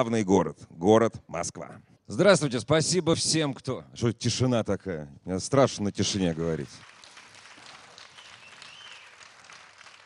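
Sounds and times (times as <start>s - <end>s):
speech: 0.0s - 6.9s
audience applause: 6.2s - 10.0s.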